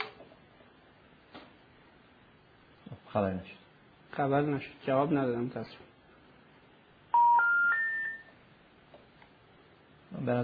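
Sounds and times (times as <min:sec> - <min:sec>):
speech: 0:03.1 - 0:03.6, 0:04.2 - 0:05.9, 0:10.3 - 0:10.4
telephone keypad tones as a number is dialled: 0:07.2 - 0:08.3.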